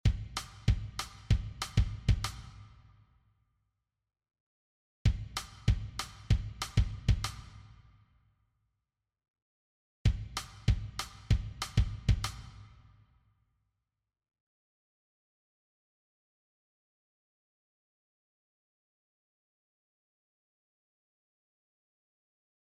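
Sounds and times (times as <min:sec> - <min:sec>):
drum kit: 0:00.0 - 0:02.6, 0:05.1 - 0:07.6, 0:10.1 - 0:12.6.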